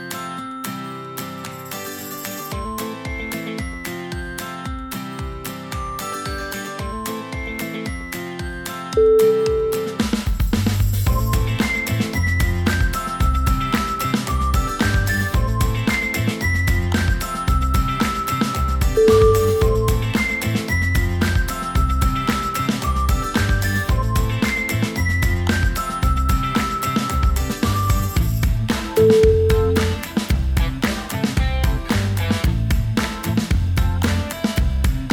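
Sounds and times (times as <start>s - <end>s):
funky indie music: 2.5s - 35.1s.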